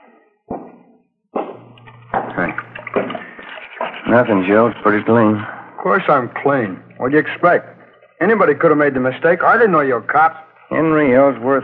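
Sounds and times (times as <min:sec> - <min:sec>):
water running from a tap: 0:01.7 - 0:08.7
speech: 0:04.1 - 0:11.6.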